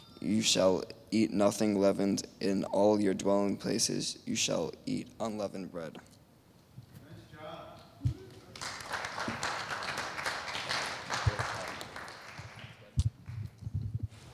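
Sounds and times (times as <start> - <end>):
speech: 0.2 - 6.2
crowd clapping: 8.3 - 13.5.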